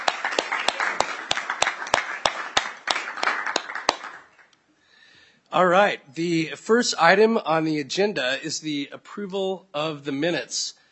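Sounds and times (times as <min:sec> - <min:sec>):
round of applause for returning co-chair: 0:00.0 - 0:04.5
speech: 0:05.6 - 0:10.8.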